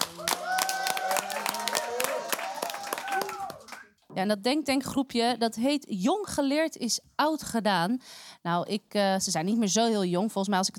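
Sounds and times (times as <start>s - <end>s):
audience applause: 0.0s - 3.8s
speech: 4.2s - 10.7s.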